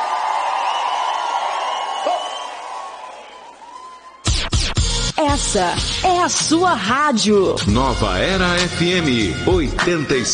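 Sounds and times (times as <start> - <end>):
applause: 0.0 - 4.2
cheering: 0.0 - 4.4
speech: 5.4 - 10.3.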